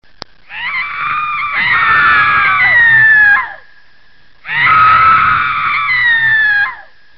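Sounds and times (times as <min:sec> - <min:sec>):
person screaming: 0:00.5 - 0:03.6, 0:04.5 - 0:06.9.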